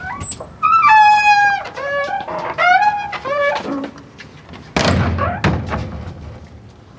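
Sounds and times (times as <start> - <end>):
wooden door squeaking: 0.0 - 4.0, 4.8 - 6.0
wooden door shutting with heavy thud: 4.8 - 6.4.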